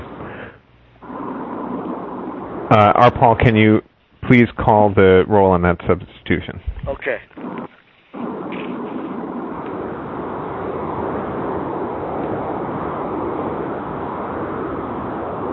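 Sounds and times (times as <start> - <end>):
highway car noise over a phone line: 0.0 - 3.7, 7.3 - 15.5
speech: 2.7 - 8.2.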